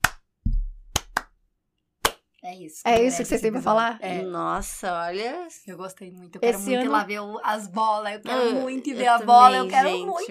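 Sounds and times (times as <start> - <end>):
slow hand clapping: 0.0 - 1.4, 2.0 - 2.3
speech: 2.4 - 10.2.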